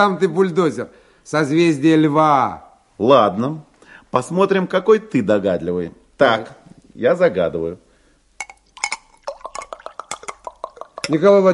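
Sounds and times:
speech: 0.0s - 7.8s, 11.1s - 11.5s
glass clinking: 8.4s - 11.2s
water poured from a glass carafe into a drinking glass: 8.4s - 11.2s.

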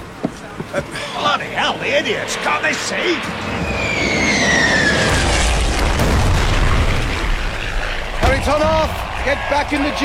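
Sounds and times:
speech: 0.7s - 1.0s, 1.6s - 4.2s, 8.4s - 10.0s
high whistling tone: 3.4s - 5.2s
bomb explosion after an aircraft attack: 3.6s - 9.2s.

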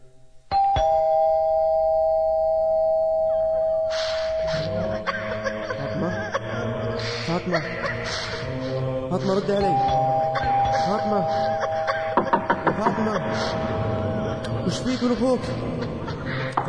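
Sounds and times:
doorbell rung by arriving visitors with a bright two-tone ring: 0.5s - 4.7s, 9.7s - 12.1s
laughter: 4.4s - 16.6s
speech: 9.1s - 10.2s, 10.8s - 11.7s, 12.8s - 16.0s.

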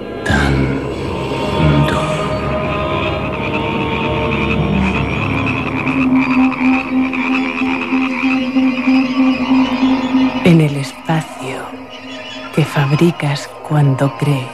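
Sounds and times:
frogs croaking: 0.0s - 14.5s
speech: 13.0s - 14.5s.

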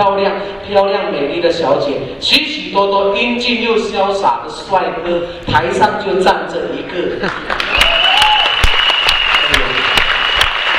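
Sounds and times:
speech: 0.0s - 7.9s
audience applauding at a product presentation event: 7.2s - 10.7s.

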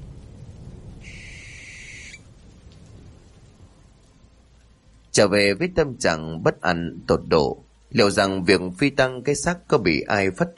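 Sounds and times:
low rumble: 0.0s - 1.6s, 2.2s - 10.2s
barn owl screeching as it takes off above a river: 1.0s - 2.2s
speech: 5.2s - 10.5s.

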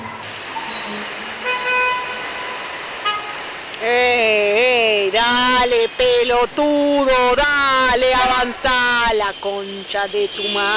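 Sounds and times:
traffic jam rumble at a street corner in Buenos Aires: 0.0s - 10.7s
car horns honking in a traffic jam: 0.6s - 3.5s, 8.0s - 10.7s
speech: 3.8s - 4.4s, 5.2s - 10.7s.

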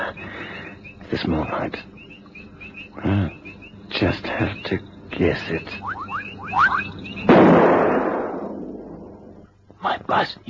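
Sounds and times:
speech: 1.1s - 2.0s, 3.0s - 3.4s, 4.0s - 6.0s, 9.9s - 10.4s
rifle gunshot: 7.3s - 8.7s.

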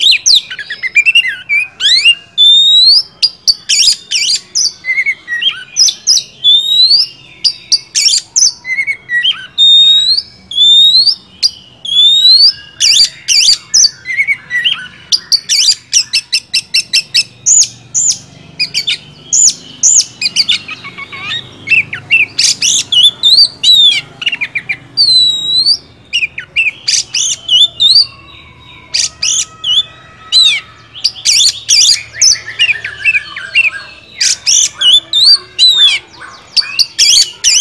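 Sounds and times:
Oriental magpie-robin singing: 0.0s - 37.5s.

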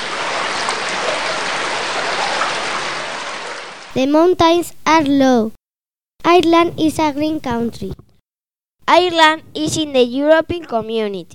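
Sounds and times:
flowing river water: 0.0s - 3.9s
speech: 4.0s - 5.6s, 6.2s - 8.0s, 8.9s - 11.3s.

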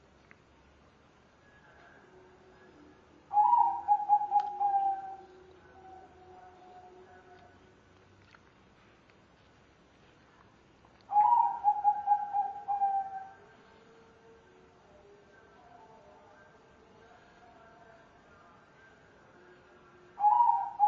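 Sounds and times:
dove cooing with a low hollow note: 3.3s - 6.1s, 11.1s - 13.4s, 20.2s - 20.8s.

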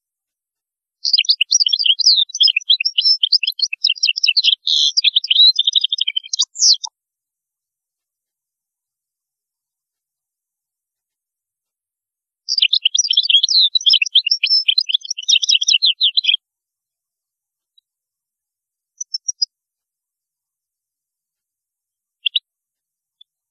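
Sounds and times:
European goldfinch twittering song: 1.0s - 6.9s, 12.5s - 16.4s, 19.0s - 19.5s, 22.2s - 22.4s.

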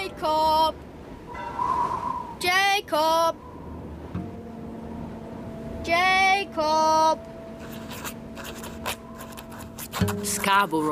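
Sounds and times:
low steady hum: 0.0s - 10.9s
speech: 0.2s - 0.9s, 2.4s - 3.5s, 5.8s - 7.3s, 10.0s - 10.9s
pen scratching on an envelope: 7.6s - 10.4s.

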